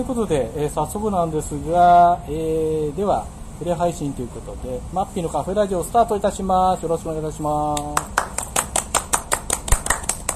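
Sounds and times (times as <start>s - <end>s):
speech: 0.0s - 8.2s
small live audience clapping at a seminar: 7.8s - 10.3s.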